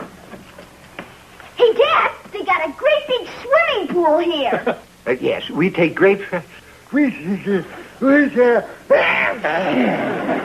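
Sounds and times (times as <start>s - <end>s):
speech: 2.6s - 10.4s
sneeze: 8.9s - 9.6s
laughter: 8.9s - 10.4s.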